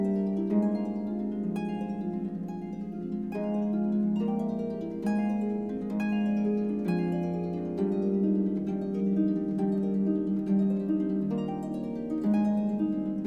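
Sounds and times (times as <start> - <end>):
instrumental praise music on harp: 0.0 - 13.2.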